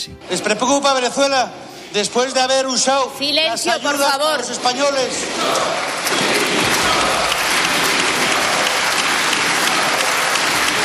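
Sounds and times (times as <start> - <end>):
speech: 0.0 - 7.2
ovation applause in parliament: 4.0 - 10.8.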